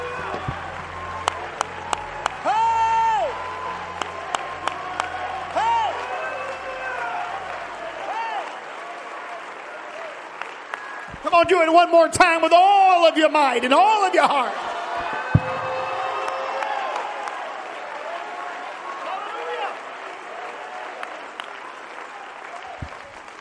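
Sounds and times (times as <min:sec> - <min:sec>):
audience shouting: 0:00.0 - 0:08.7, 0:13.7 - 0:19.7
audience clapping: 0:00.0 - 0:12.8, 0:13.4 - 0:23.3
speech: 0:11.5 - 0:14.7.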